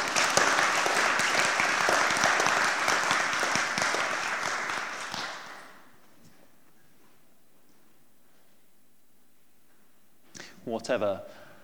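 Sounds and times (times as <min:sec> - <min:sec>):
audience applause: 0:00.0 - 0:05.9
speech: 0:10.8 - 0:11.4.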